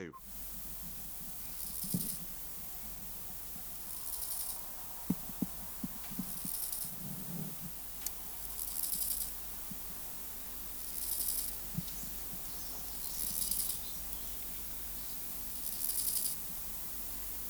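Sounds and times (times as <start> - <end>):
Chorthippus grasshopper: 0.1 - 17.4.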